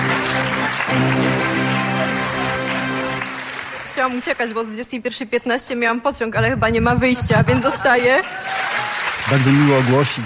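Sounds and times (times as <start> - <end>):
crowd applauding at an award ceremony: 0.0 - 4.9, 7.5 - 10.2
speech: 4.0 - 10.2.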